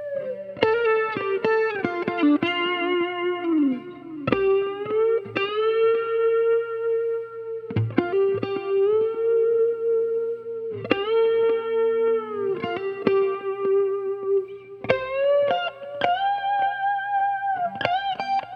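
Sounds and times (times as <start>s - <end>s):
clean Strat electric guitar intro on neck pickup: 0.0s - 18.5s.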